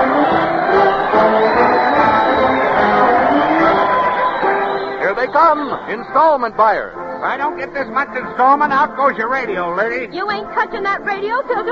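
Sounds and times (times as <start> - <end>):
crowd cheering: 0.0 - 8.7
speech: 5.4 - 11.7.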